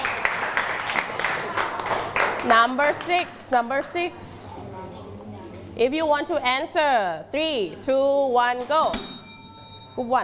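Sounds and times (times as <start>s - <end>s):
group of children clapping together: 0.0s - 3.2s
speech: 2.4s - 4.4s, 5.8s - 9.1s, 10.0s - 10.2s.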